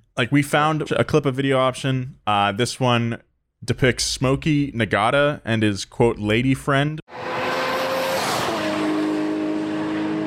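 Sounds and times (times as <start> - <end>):
speech: 0.2 - 7.4
tuned car engine roaring with high whine, accelerating toward 200 mph: 7.1 - 10.2.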